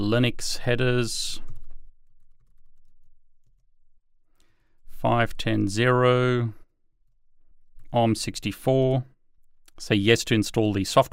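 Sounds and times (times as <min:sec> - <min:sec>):
speech: 0:00.0 - 0:01.5, 0:05.0 - 0:06.6, 0:07.9 - 0:09.1, 0:09.8 - 0:11.1
soft rapid computer keyboard typing on an Apple M1 computer: 0:01.4 - 0:03.7.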